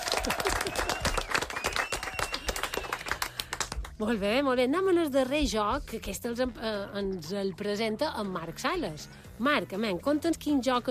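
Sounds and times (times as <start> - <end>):
audience applause: 0.0 - 3.9
speech: 4.0 - 10.8.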